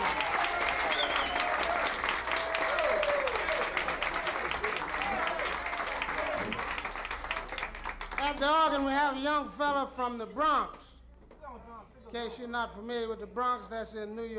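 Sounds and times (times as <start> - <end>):
faint cheers and whistles: 0.0 - 7.6
crowd applauding: 0.0 - 9.0
speech: 8.4 - 10.9, 12.1 - 14.3.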